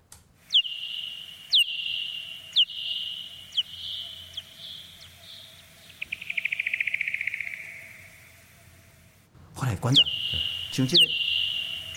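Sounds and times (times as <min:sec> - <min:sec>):
bat echolocation calls while foraging: 0:00.4 - 0:09.2, 0:09.8 - 0:11.9
speech: 0:09.8 - 0:11.2.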